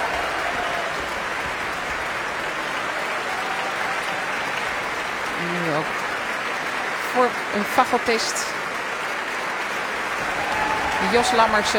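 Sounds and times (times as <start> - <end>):
applause for orchestra clarinettists: 0.0 - 11.7
speech: 7.2 - 8.6, 11.1 - 11.7.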